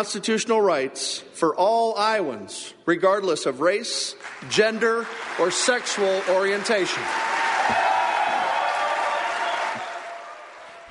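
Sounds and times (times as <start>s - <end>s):
speech: 0.0s - 7.9s
crowd applause: 4.2s - 10.8s
crowd cheers: 5.2s - 10.8s.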